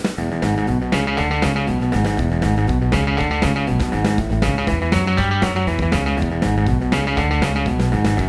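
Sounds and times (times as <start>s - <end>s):
MIDI blues music: 0.2s - 8.2s.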